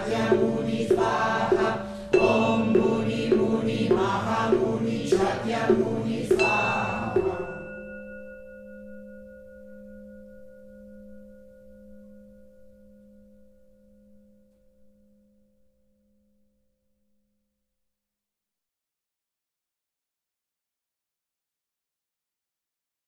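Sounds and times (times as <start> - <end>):
mantra chanting: 0.0 - 7.8.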